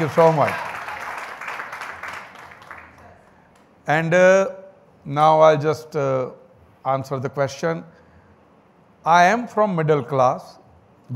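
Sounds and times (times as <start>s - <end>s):
speech: 0.0s - 0.6s, 3.9s - 8.0s, 9.0s - 10.6s
audience applause: 0.0s - 3.1s.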